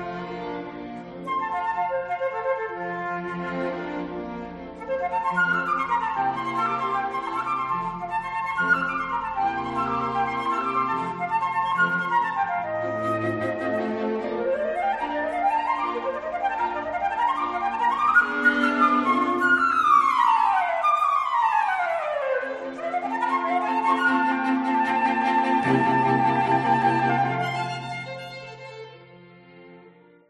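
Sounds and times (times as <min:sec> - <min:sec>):
sonata for flute and strings: 0:00.0 - 0:30.2.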